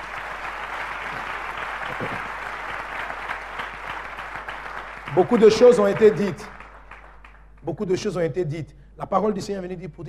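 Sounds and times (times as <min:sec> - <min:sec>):
church congregation applauding at a French-language worship service: 0:00.0 - 0:07.6
speech: 0:02.0 - 0:02.4, 0:05.2 - 0:06.5, 0:07.7 - 0:10.0.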